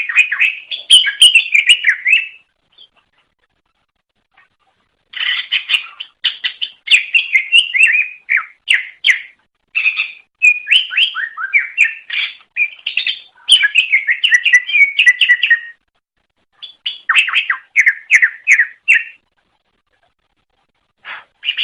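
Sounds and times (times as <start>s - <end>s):
leafbird chattering whistled song: 0.0s - 3.0s, 5.1s - 15.8s, 16.6s - 19.2s, 21.0s - 21.6s.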